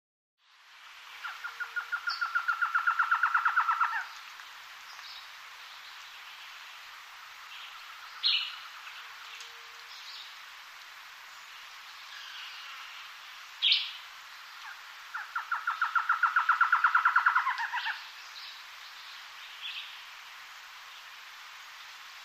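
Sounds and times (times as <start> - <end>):
jungle ambience: 0.4 - 22.2.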